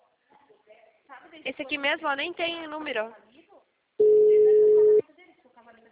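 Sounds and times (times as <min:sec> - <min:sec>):
speech: 0:01.2 - 0:03.3
telephone tone on an unanswered call: 0:04.0 - 0:05.0.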